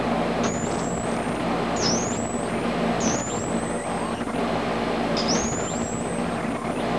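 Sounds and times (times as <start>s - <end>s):
17kHz flyback power supply whine: 0.0s - 6.9s.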